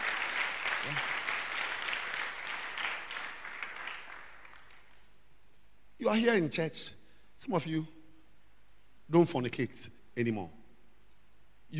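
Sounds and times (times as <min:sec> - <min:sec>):
audience applauding: 0:00.0 - 0:05.1
speech: 0:06.0 - 0:08.0, 0:09.1 - 0:10.6.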